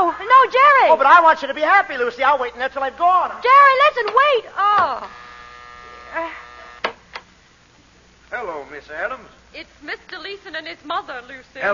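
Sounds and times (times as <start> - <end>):
speech: 0.5 - 5.3, 6.1 - 6.4, 8.3 - 11.7
doorbell buzzer ringing: 4.8 - 6.9.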